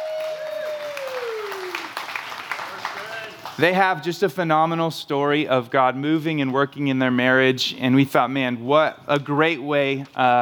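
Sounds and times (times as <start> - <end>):
audience applause welcoming speakers to the stage: 0.0 - 3.7
speech: 3.6 - 10.4.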